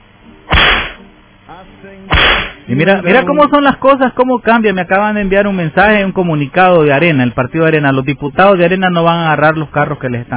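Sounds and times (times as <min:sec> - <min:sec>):
whip-lash sound effect: 0:00.5 - 0:01.0, 0:02.2 - 0:02.6
speech: 0:01.5 - 0:10.3.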